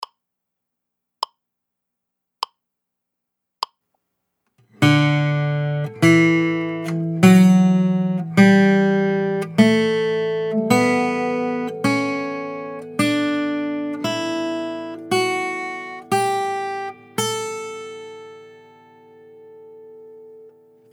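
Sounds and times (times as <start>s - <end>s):
D scale: 4.8s - 18.5s.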